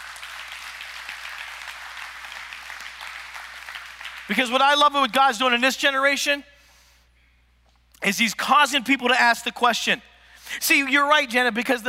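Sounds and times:
audience clapping: 0:00.0 - 0:04.8
speech: 0:04.3 - 0:06.5, 0:08.0 - 0:11.8.

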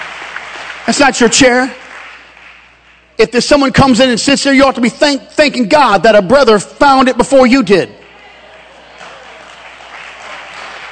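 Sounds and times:
audience clapping: 0:00.0 - 0:03.2, 0:08.0 - 0:10.9
speech: 0:00.9 - 0:01.8, 0:03.2 - 0:08.0.

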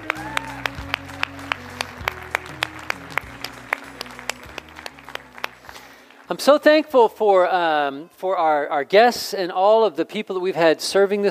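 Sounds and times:
audience applause for kids: 0:00.0 - 0:07.1
speech: 0:06.3 - 0:11.2.

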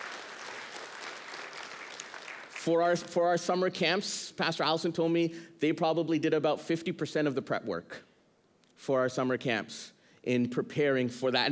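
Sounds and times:
crowd applause: 0:00.0 - 0:02.7
speech: 0:02.6 - 0:08.1, 0:08.8 - 0:11.5.

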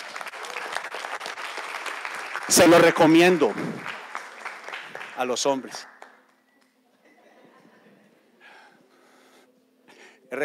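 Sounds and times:
audience applause: 0:00.0 - 0:06.3
speech: 0:02.5 - 0:04.0, 0:05.2 - 0:06.0
laughter: 0:06.9 - 0:08.4.

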